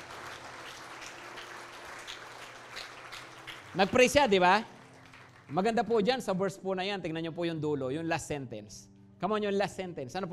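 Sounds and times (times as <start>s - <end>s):
church congregation clapping during a worship service: 0.0s - 6.3s
speech: 3.8s - 4.8s, 5.5s - 10.3s.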